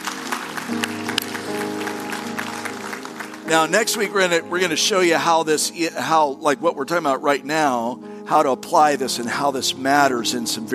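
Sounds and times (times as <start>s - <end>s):
audience applause: 0.0s - 4.4s
speech: 3.5s - 10.7s.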